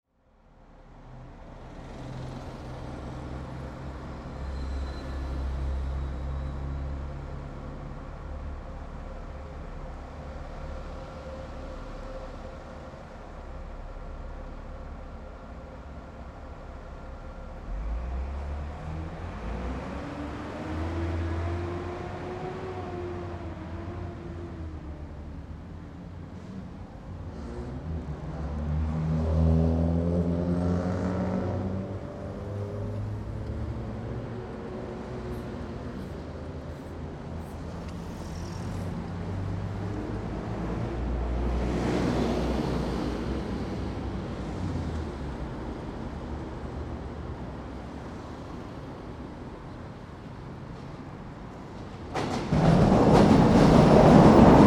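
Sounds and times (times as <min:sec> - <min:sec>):
trains on a bridge: 0:00.2 - 0:54.6.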